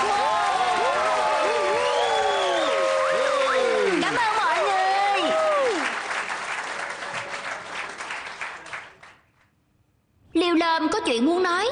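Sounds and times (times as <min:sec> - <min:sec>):
audience applause: 0:00.0 - 0:09.3
speech: 0:11.0 - 0:11.6.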